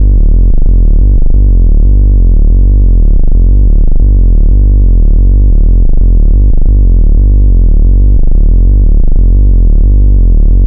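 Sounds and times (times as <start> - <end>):
synth bass: 0.0 - 10.6.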